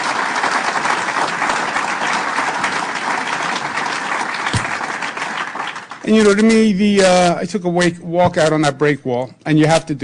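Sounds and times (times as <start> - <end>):
audience applause: 0.0 - 6.4
speech: 6.1 - 10.0.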